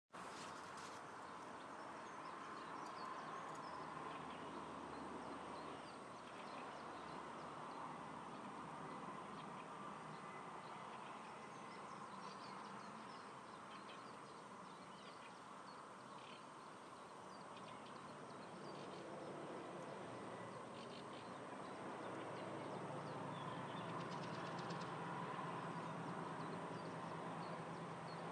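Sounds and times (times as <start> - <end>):
dawn chorus of birds outside a bedroom window: 0.3 - 28.2.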